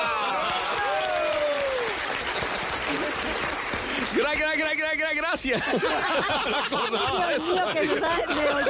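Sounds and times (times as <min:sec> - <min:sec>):
audience applause welcoming a guest: 0:00.1 - 0:04.8
whistles and cheers: 0:00.3 - 0:02.8, 0:04.2 - 0:05.3
laughter: 0:02.2 - 0:04.2, 0:05.5 - 0:08.6
speech: 0:04.8 - 0:08.6.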